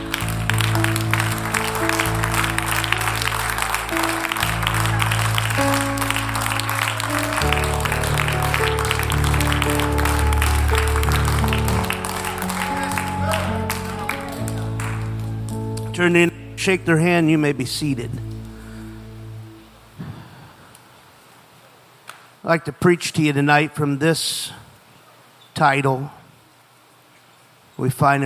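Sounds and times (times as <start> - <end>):
audience clapping hands: 0.0 - 18.4
speech: 16.0 - 18.3, 22.5 - 24.6, 25.6 - 26.2, 27.8 - 28.2.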